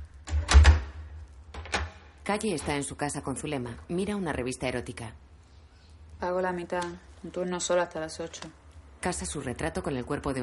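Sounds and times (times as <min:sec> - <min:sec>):
door closing: 0:00.3 - 0:01.0
speech: 0:02.3 - 0:05.3, 0:06.2 - 0:10.4.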